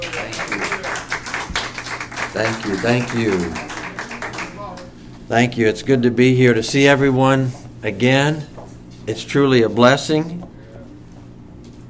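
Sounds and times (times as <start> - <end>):
church congregation applause welcoming a preacher: 0.0 - 5.0
speech: 2.3 - 3.7, 5.3 - 8.5, 9.1 - 10.5.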